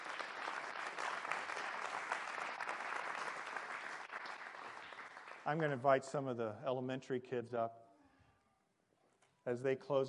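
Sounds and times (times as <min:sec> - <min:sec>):
audience clapping hands: 0:00.0 - 0:06.0
speech: 0:05.5 - 0:07.8, 0:09.5 - 0:10.0.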